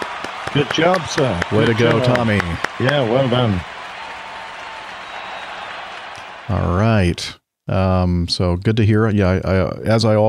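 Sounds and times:
applause sound effect: 0.0 - 6.7
speech: 0.5 - 3.7, 6.5 - 10.2.

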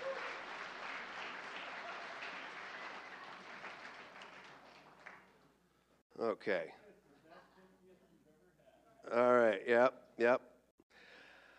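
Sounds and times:
audience applause: 0.0 - 5.4
speech: 6.2 - 6.8, 9.1 - 10.4.

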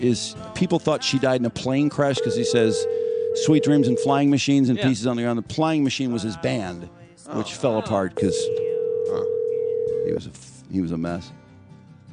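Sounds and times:
speech: 0.0 - 9.4, 10.0 - 11.4
telephone line ringing on outgoing call: 2.0 - 4.3, 8.1 - 10.2.

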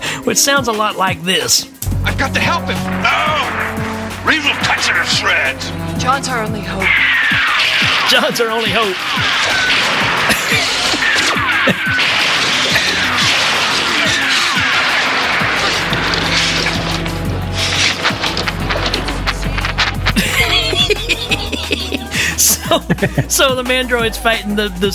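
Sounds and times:
speech: 0.2 - 10.8, 11.6 - 12.6, 22.7 - 24.9
bottle-rocket shots hitting the Mandroid in a film fight scene: 1.8 - 20.9
laughter: 7.9 - 16.2, 17.6 - 24.9.

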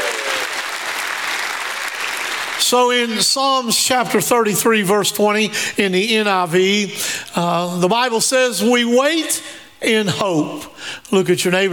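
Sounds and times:
audience applause and cheering: 0.0 - 2.8
speech: 2.7 - 11.7.

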